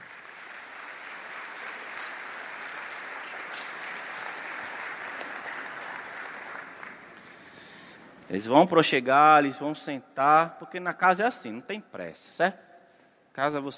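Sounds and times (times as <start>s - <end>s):
audience applause: 0.0s - 7.2s
speech: 8.3s - 12.7s, 13.4s - 13.7s.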